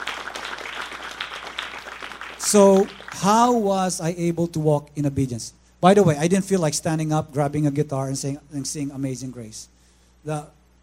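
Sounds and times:
crowd applause: 0:00.0 - 0:03.3
speech: 0:02.5 - 0:10.6.

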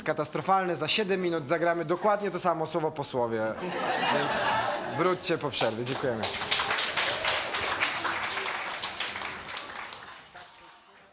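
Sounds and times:
speech: 0:00.0 - 0:06.6
laughter: 0:03.6 - 0:05.5
crowd applauding: 0:05.3 - 0:11.1.

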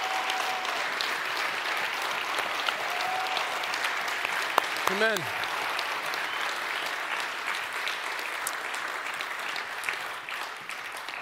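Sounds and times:
audience cheering: 0:00.0 - 0:07.3
audience applause: 0:00.0 - 0:11.2
speech: 0:04.9 - 0:05.4.

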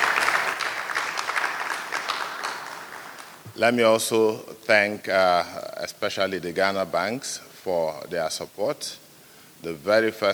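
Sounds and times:
crowd clapping: 0:00.0 - 0:03.5
speech: 0:03.6 - 0:09.0, 0:09.6 - 0:10.3.

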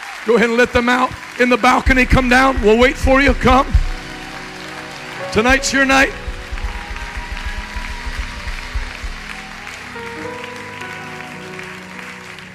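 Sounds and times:
audience clapping: 0:00.0 - 0:12.5
speech: 0:00.2 - 0:03.8, 0:05.3 - 0:06.2
rhythmic thumping beat: 0:01.8 - 0:10.0
sustained musical tones: 0:01.9 - 0:10.8.

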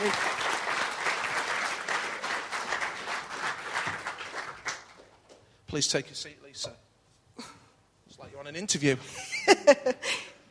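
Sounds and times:
audience applause welcoming a guest at a Christian gathering: 0:00.0 - 0:05.2
speech: 0:05.7 - 0:06.8, 0:08.4 - 0:10.2.

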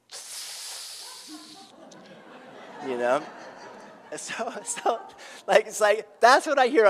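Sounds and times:
person sucking air in through teeth: 0:00.0 - 0:01.8
laughter: 0:01.0 - 0:05.6
speech: 0:02.8 - 0:03.4, 0:04.1 - 0:06.8.

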